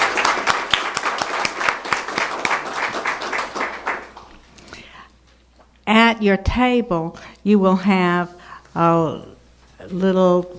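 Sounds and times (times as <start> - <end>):
round of applause: 0.0 - 4.4
speech: 6.2 - 10.5.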